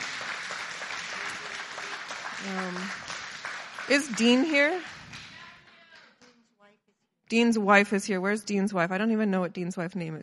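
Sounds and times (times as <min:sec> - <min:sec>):
audience applause: 0:00.0 - 0:06.0
speech: 0:02.4 - 0:03.1, 0:03.9 - 0:05.0, 0:07.3 - 0:10.2.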